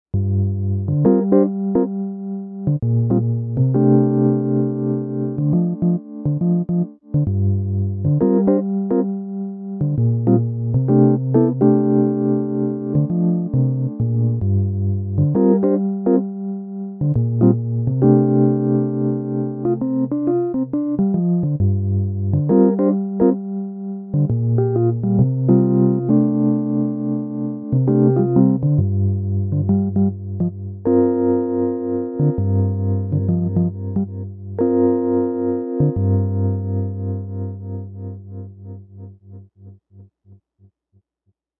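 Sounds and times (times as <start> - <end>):
mellow electric piano: 0.1 - 39.8.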